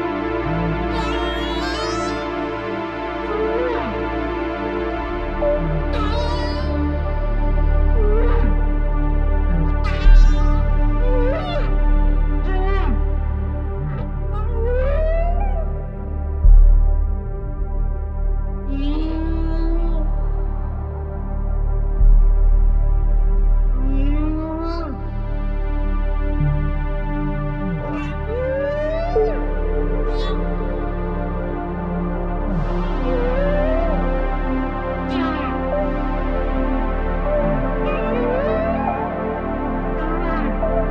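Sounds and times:
whale song: 0.0s - 40.8s.

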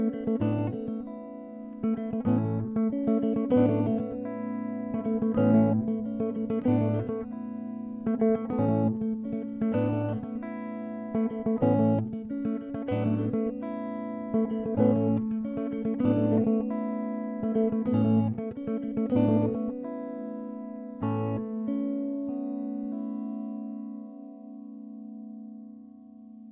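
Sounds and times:
guitar motif in five-four time: 0.0s - 26.4s.

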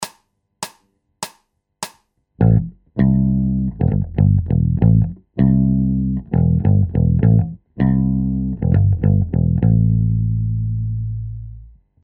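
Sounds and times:
bass loops: 2.4s - 11.8s.

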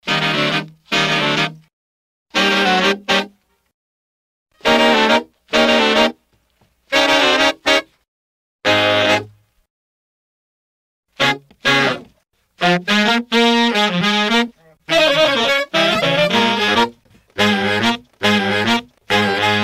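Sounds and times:
brass loop: 0.0s - 1.7s, 2.3s - 3.4s, 4.6s - 6.2s, 6.9s - 8.0s, 8.6s - 9.4s, 11.1s - 19.6s.

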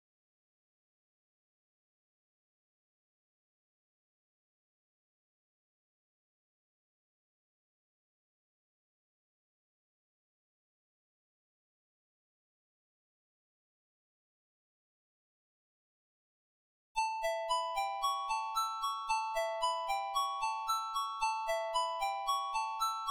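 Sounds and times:
melody: 17.0s - 23.0s.

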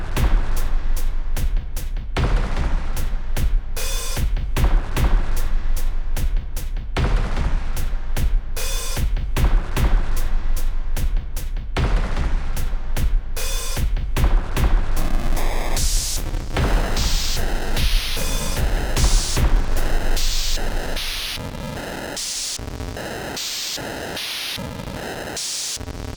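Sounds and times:
percussion: 0.0s - 22.9s
noise effects: 15.0s - 26.1s.

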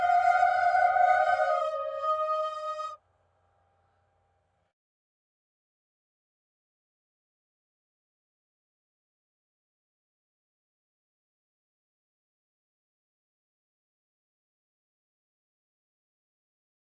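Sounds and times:
folk music: 0.0s - 2.6s.

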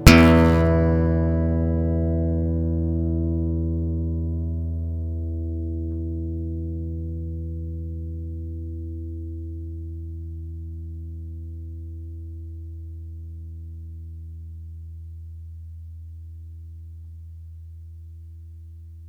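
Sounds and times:
two guitars improvising: 0.0s - 8.2s.

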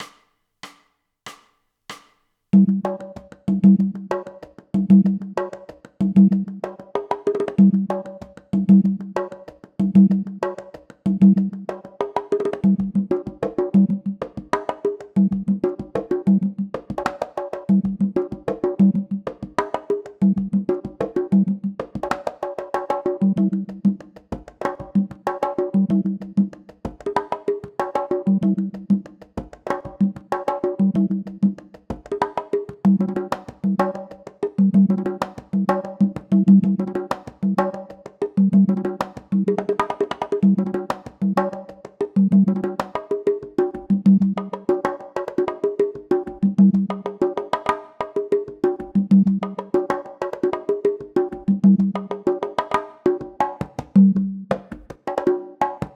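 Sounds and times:
congas: 0.0s - 55.9s.

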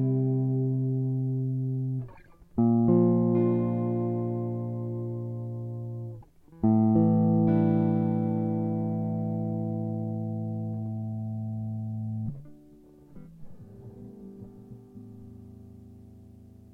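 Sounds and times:
guitar chords in D minor: 0.0s - 16.7s.

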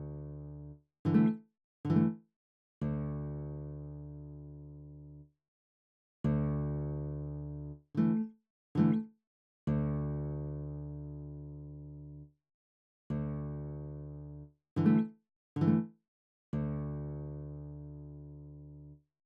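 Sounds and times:
classical acoustic guitar: 0.0s - 2.2s, 2.8s - 5.2s, 6.2s - 9.1s, 9.7s - 12.2s, 13.1s - 15.9s, 16.6s - 18.9s.

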